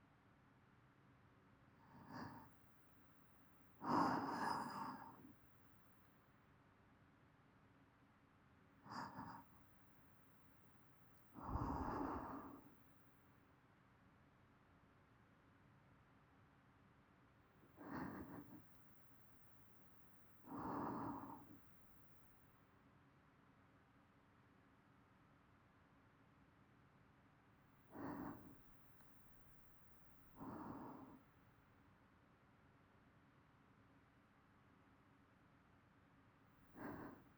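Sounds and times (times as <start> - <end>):
person breathing in sleep loop: 1.9 - 2.6, 3.8 - 5.4, 8.9 - 9.5, 11.4 - 12.7, 17.8 - 18.8, 20.4 - 21.6, 27.9 - 28.7, 30.3 - 31.2, 36.7 - 37.3.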